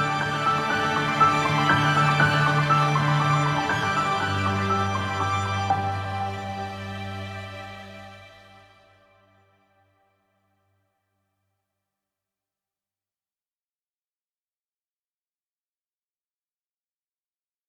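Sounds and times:
sparkling ambient music: 0:00.0 - 0:09.4.

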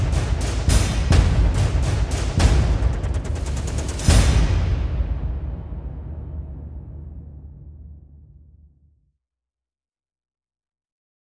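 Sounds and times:
epic action percussion build: 0:00.0 - 0:08.9.

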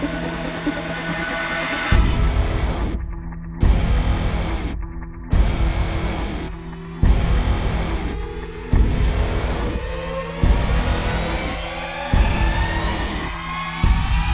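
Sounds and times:
synth pads: 0:00.0 - 0:14.3.

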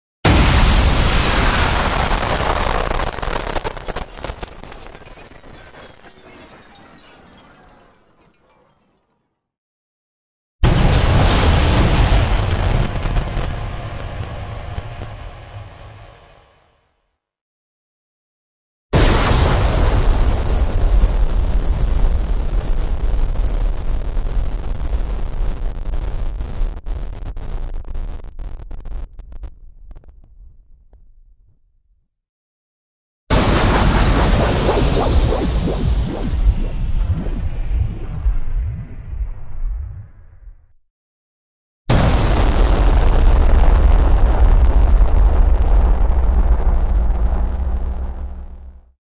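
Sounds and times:
distorted explosions: 0:00.3 - 0:06.2, 0:10.6 - 0:16.9, 0:19.0 - 0:30.9, 0:33.3 - 0:40.7, 0:41.9 - 0:49.0.

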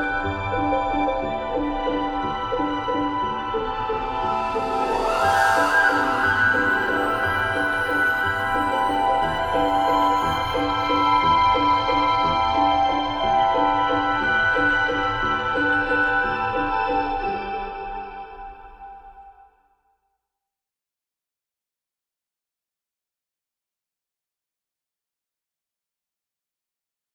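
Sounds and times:
magic ambient music: 0:00.0 - 0:19.3.

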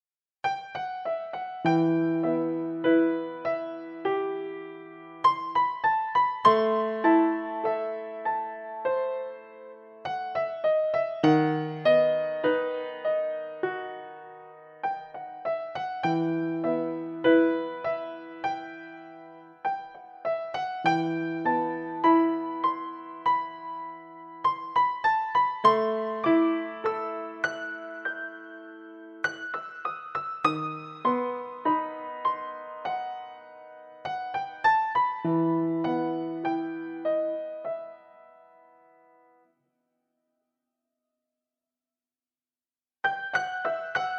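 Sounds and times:
piano soundtrack music: 0:00.4 - 0:39.5, 0:43.0 - 0:44.1.

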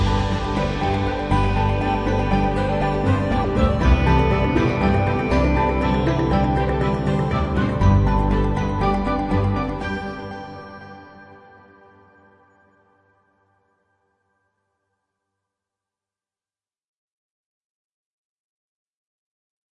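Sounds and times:
ambient music: 0:00.0 - 0:13.6.

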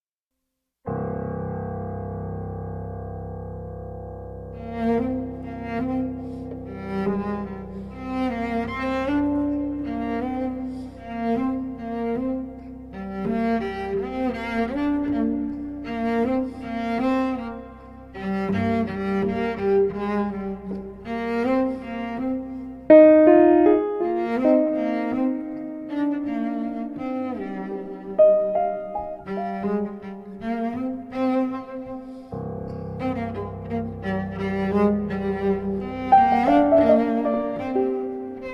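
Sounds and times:
piano improvisation: 0:00.8 - 0:38.5
cello improvisation: 0:03.9 - 0:38.5.

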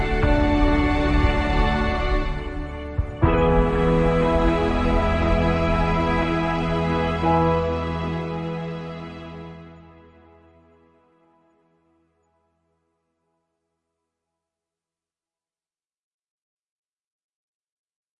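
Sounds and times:
ambient music: 0:00.0 - 0:13.6.

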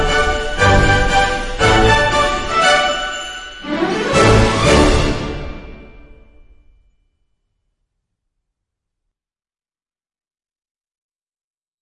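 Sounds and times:
festive march: 0:00.0 - 0:06.6.

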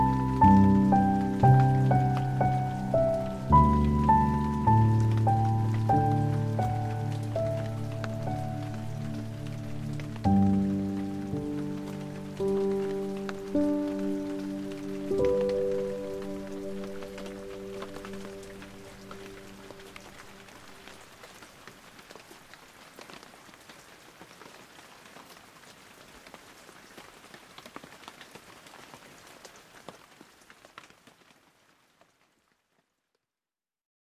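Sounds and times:
piano: 0:00.0 - 0:21.2
rain: 0:00.0 - 0:33.2.

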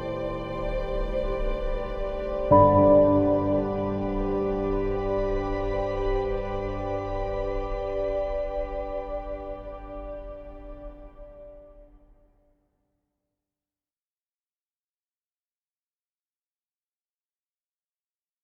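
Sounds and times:
ambient music: 0:00.0 - 0:12.2.

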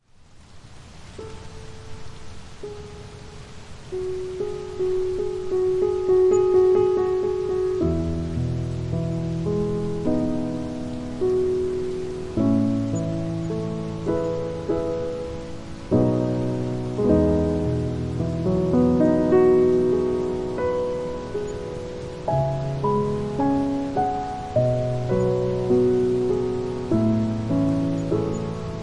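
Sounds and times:
rain: 0:00.0 - 0:28.8
piano: 0:00.9 - 0:28.8.

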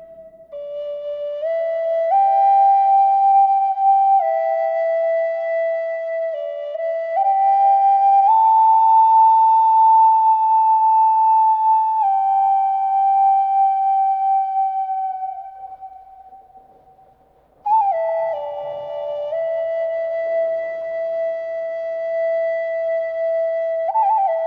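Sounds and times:
Native American flutes: 0:00.0 - 0:24.4.

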